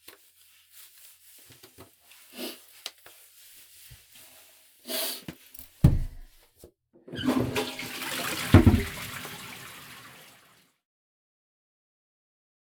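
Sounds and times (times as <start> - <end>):
person urinating: 7.3 - 10.6.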